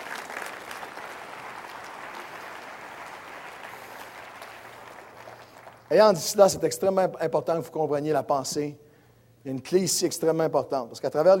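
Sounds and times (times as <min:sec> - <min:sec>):
church congregation giving a sustained ovation: 0:00.0 - 0:06.0
speech: 0:05.9 - 0:08.8, 0:09.4 - 0:11.3.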